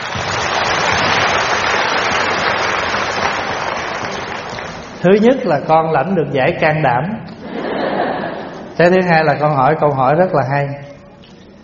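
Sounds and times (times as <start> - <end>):
audience applause: 0.0 - 5.3
speech: 5.0 - 7.4, 8.8 - 10.8
laughter: 7.4 - 8.8.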